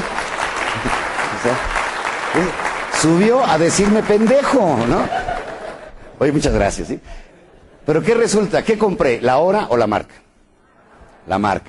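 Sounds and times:
audience applause: 0:00.0 - 0:06.0
speech: 0:01.4 - 0:05.2, 0:06.2 - 0:07.3, 0:07.9 - 0:10.2, 0:11.2 - 0:11.6
laughter: 0:04.6 - 0:08.5, 0:10.6 - 0:11.6.

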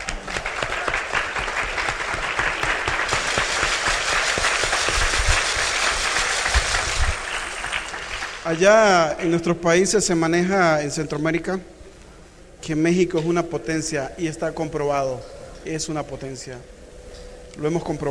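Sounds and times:
audience applause: 0:00.0 - 0:09.0
speech: 0:08.5 - 0:11.7, 0:12.7 - 0:16.8, 0:17.6 - 0:18.1.

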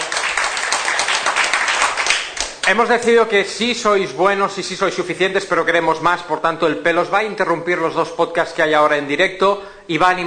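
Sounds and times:
audience applause: 0:00.0 - 0:02.8
speech: 0:02.7 - 0:10.2.

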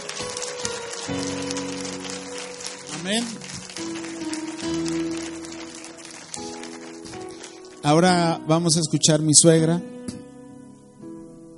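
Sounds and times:
audience applauding: 0:00.0 - 0:08.2
speech: 0:01.1 - 0:01.4, 0:03.1 - 0:03.5, 0:07.8 - 0:09.9.

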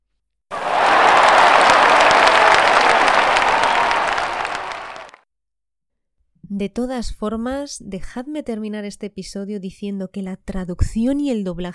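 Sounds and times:
crowd applauding: 0:00.5 - 0:05.2
speech: 0:06.6 - 0:11.7.

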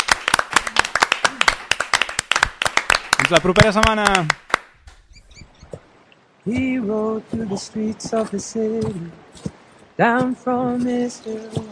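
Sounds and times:
audience clapping: 0:00.0 - 0:04.9
speech: 0:03.3 - 0:04.4, 0:06.4 - 0:09.2, 0:10.0 - 0:11.7.

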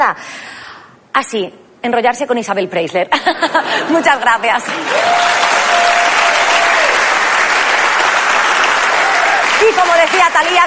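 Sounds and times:
speech: 0:00.1 - 0:00.5, 0:01.2 - 0:05.4, 0:09.6 - 0:10.6
audience applause: 0:04.6 - 0:10.6.

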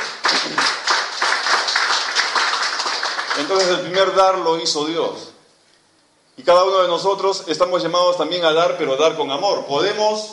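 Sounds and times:
audience clapping: 0:00.0 - 0:04.1
speech: 0:03.4 - 0:05.3, 0:06.4 - 0:10.3.

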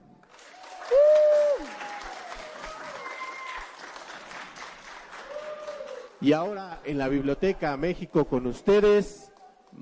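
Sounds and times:
children applauding: 0:00.2 - 0:06.2
children cheering: 0:00.5 - 0:03.8, 0:05.2 - 0:06.1
speech: 0:06.2 - 0:09.8.

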